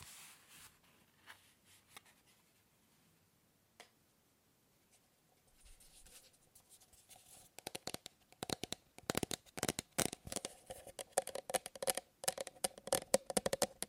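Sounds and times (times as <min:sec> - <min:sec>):
fast and slow tapping on objects: 0:07.6 - 0:13.8.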